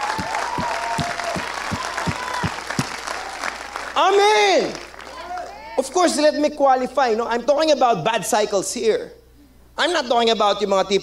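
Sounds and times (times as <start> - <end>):
audience clapping hands: 0.0 - 5.6
speech: 4.0 - 4.8, 6.0 - 9.2, 9.8 - 11.0.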